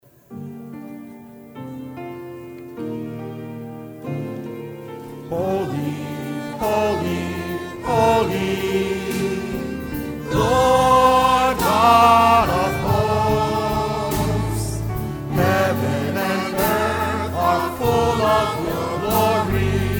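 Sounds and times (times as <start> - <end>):
choir singing a hymn: 4.1 - 19.9.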